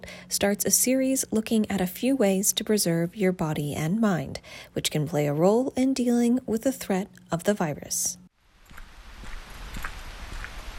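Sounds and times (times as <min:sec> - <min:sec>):
speech: 0:00.3 - 0:08.2
footsteps walking on a trail in Clark Reservation, Jamesville: 0:08.6 - 0:10.7.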